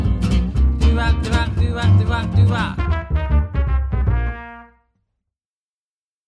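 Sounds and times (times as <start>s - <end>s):
jazz music: 0.1s - 4.9s.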